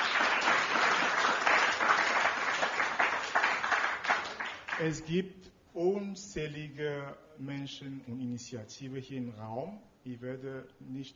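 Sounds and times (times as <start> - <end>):
audience applause: 0.0 - 4.9
speech: 4.8 - 11.1.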